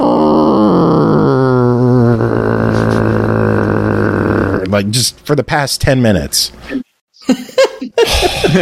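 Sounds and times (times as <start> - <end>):
man's voice imitating cats fighting behind couch: 0.0 - 4.9
speech: 4.7 - 7.4.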